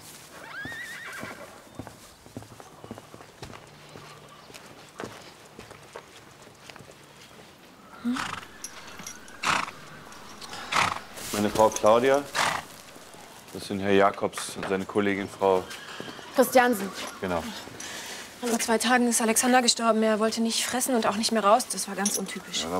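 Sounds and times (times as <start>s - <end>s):
horses whinnying and neighing: 0.4s - 1.6s, 7.8s - 13.5s, 14.9s - 18.4s
speech: 8.1s - 8.4s, 11.5s - 12.4s, 13.6s - 17.8s, 18.4s - 22.7s.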